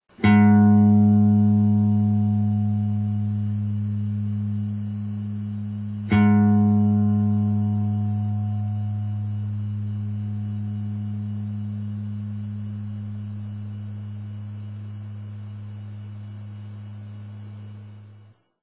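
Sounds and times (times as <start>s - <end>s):
acoustic guitar tuning up a fifth: 0.2s - 14.4s.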